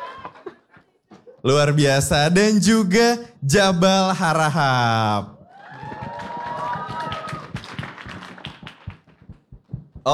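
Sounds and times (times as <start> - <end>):
crowd cheering: 0.0 - 0.6, 5.0 - 9.4
speech: 1.4 - 5.3
audience applause: 5.4 - 9.4.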